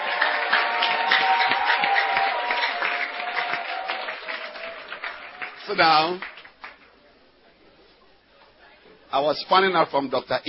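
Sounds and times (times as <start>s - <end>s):
audience clapping: 0.0s - 7.0s
speech: 5.7s - 6.3s, 9.1s - 10.4s.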